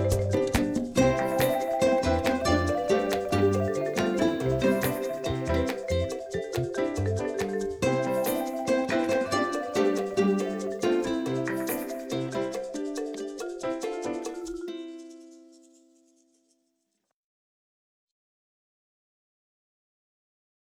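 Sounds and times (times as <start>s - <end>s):
quirky underscore music: 0.0s - 15.1s.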